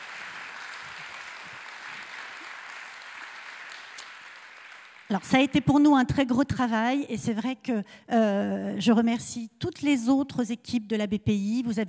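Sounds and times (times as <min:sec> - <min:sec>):
audience applause: 0:00.0 - 0:05.2
speech: 0:05.1 - 0:11.8.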